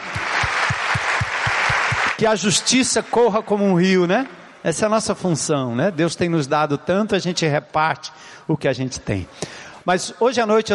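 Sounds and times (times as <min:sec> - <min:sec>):
audience applauding: 0:00.0 - 0:03.0
speech: 0:02.2 - 0:10.7.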